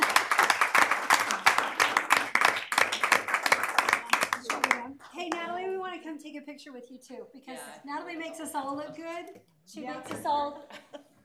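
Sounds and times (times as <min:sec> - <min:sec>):
applause in a chamber: 0:00.0 - 0:05.5
speech: 0:06.6 - 0:10.9.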